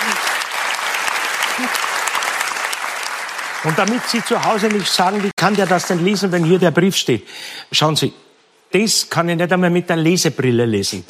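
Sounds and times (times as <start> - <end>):
audience applause: 0.0 - 6.7
speech: 1.6 - 1.8, 3.6 - 11.0.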